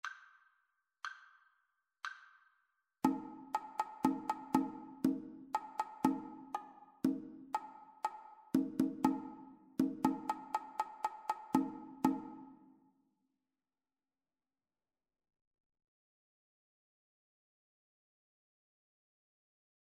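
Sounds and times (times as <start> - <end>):
two-part rhythm: 3.0 - 12.7.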